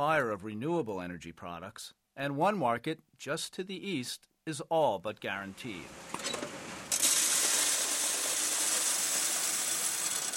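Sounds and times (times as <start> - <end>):
speech: 0.0 - 6.4
coin mint machine in Berlin dropping new euro coins into a sorter: 6.2 - 10.3.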